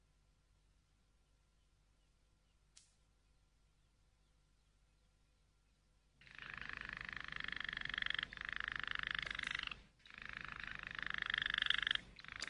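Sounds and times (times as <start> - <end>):
canary rolling trill song: 6.2 - 12.4.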